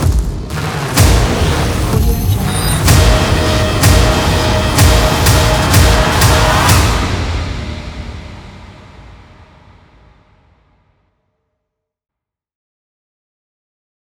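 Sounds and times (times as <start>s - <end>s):
trailer sound design: 0.0s - 10.9s.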